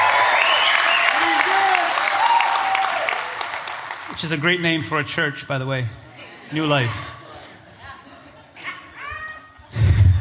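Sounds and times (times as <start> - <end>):
church congregation applause: 0.0 - 4.6
speech: 4.2 - 7.2.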